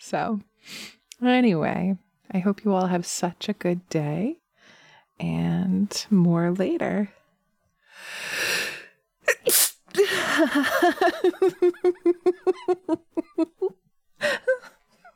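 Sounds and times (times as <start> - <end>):
speech: 0.0 - 4.4, 5.2 - 7.2, 9.3 - 14.8
sneeze: 9.3 - 10.0
laughter: 10.0 - 14.8.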